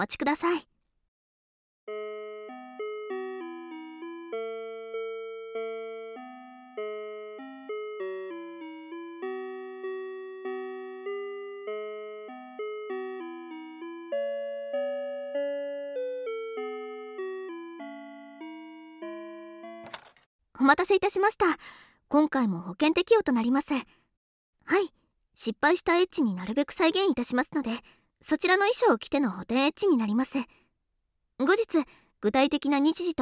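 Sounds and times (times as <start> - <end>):
speech: 0.0 - 0.7, 20.7 - 24.0, 24.7 - 30.6, 31.4 - 33.2
telephone on-hold music, tinny electronic melody: 1.9 - 19.8.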